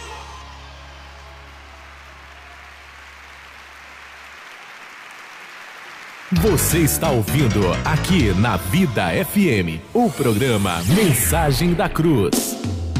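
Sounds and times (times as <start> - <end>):
audience applauding: 0.0 - 7.6
speech: 6.3 - 12.8.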